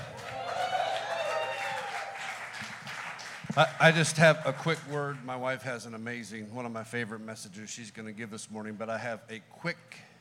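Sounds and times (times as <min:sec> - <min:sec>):
audience applause: 0:00.0 - 0:05.0
speech: 0:03.6 - 0:10.1.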